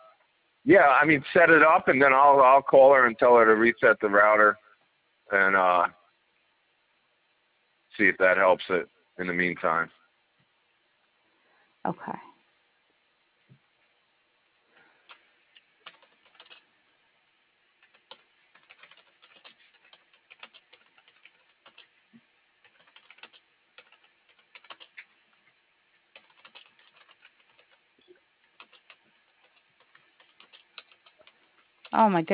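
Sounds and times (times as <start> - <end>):
speech: 0.6 - 4.6, 5.3 - 6.0, 8.0 - 10.0, 11.8 - 12.3, 32.0 - 32.3
typing on a computer keyboard: 15.0 - 16.7, 17.8 - 21.9, 22.6 - 25.2, 26.1 - 32.0.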